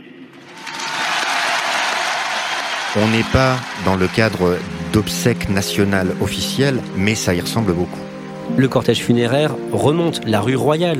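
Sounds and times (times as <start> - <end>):
crowd applause: 0.4 - 8.0
speech: 2.9 - 10.9.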